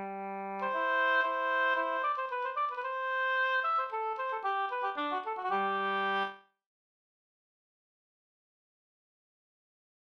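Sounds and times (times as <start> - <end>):
polska dance tune: 0.0 - 6.4.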